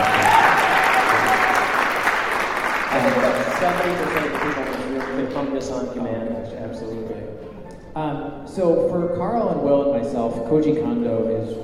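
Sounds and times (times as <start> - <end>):
audience applause: 0.0 - 5.7
speech: 3.6 - 11.6.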